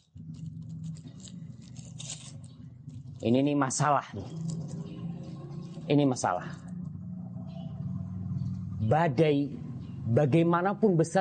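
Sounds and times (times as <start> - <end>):
rope being tied into a knot: 0.0 - 3.3
speech: 3.2 - 4.8, 5.9 - 6.7, 8.9 - 11.1.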